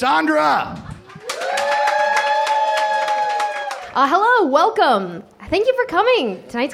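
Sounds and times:
speech: 0.0 - 0.8, 4.0 - 6.7
audience clapping: 0.7 - 4.0.

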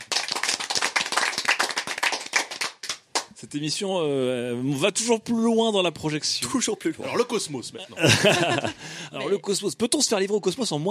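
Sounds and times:
hands clapping: 0.0 - 3.4
speech: 3.4 - 10.9
laughter: 7.8 - 9.3.

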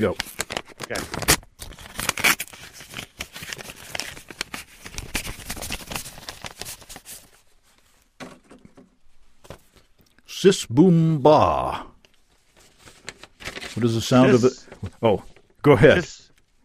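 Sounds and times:
speech: 0.0 - 0.3, 0.9 - 1.3, 10.4 - 11.9, 13.8 - 16.2
envelope being torn open: 0.0 - 7.4, 12.6 - 14.5.

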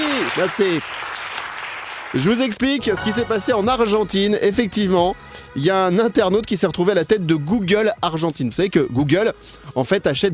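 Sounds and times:
many hands clapping: 0.0 - 3.3
speech: 0.4 - 1.1, 2.1 - 10.3.

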